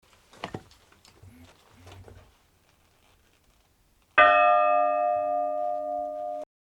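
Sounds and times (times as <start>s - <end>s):
bell ringing: 4.2s - 6.5s.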